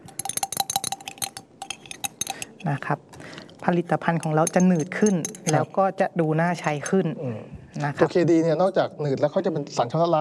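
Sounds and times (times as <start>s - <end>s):
utensil clinking against glass while stirring liquid soap mixture: 0.0s - 5.8s
speech: 2.6s - 10.1s.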